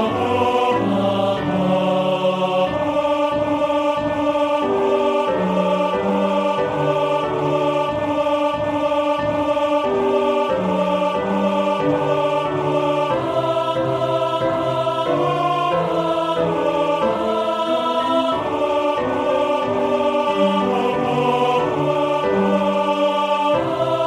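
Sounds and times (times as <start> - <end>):
tenor singing: 0.0 - 24.0.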